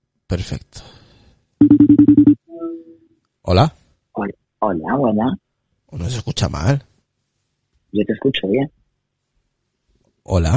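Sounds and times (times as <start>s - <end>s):
speech: 0.3s - 1.0s, 2.5s - 6.9s, 7.9s - 8.8s, 10.3s - 10.5s
phone call ringing tone: 1.6s - 2.8s.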